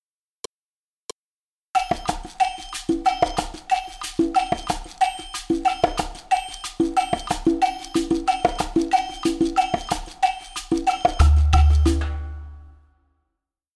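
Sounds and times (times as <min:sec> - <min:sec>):
bow beat: 0:02.1 - 0:12.8.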